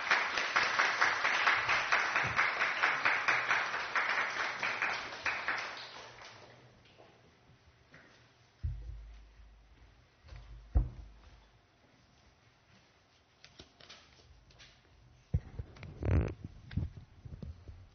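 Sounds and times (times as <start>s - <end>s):
audience applause welcoming a speaker: 0.0s - 6.7s
brief low thump: 10.4s - 11.2s.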